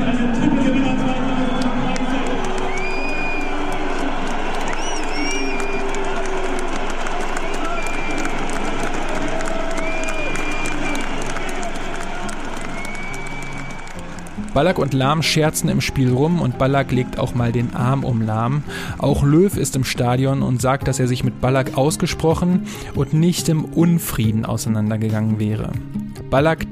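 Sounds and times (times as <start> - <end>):
stadium crowd whistling and booing: 0.2 - 16.4
speech: 14.6 - 26.7.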